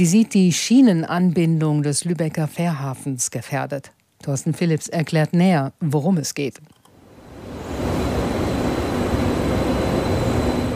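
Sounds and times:
speech: 0.0 - 6.8
faint high tonal whine of the train: 7.0 - 10.7
regional passenger train running on the tracks between Lübeck and Kiel: 7.3 - 10.7.

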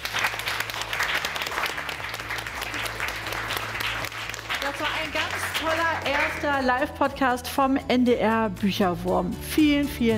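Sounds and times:
crowd of children clapping: 0.0 - 6.6
speech: 5.0 - 10.1.

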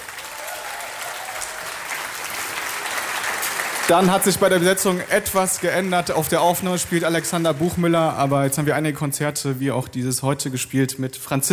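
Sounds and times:
crowd applauding: 0.0 - 8.6
speech: 3.9 - 11.5.

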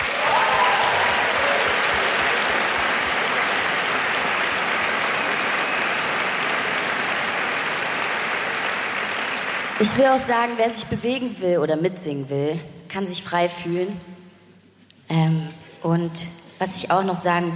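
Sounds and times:
large audience applause in concert hall: 0.0 - 10.2
speech: 9.8 - 14.1, 16.0 - 17.5.

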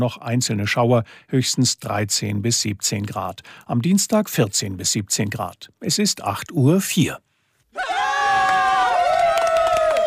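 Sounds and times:
speech: 0.0 - 8.0
crowd applause: 8.0 - 10.0.

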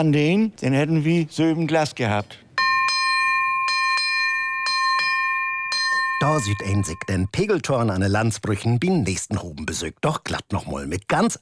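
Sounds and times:
speech: 0.0 - 2.4, 6.2 - 11.4
high-pitched bell ringing: 2.6 - 7.4.

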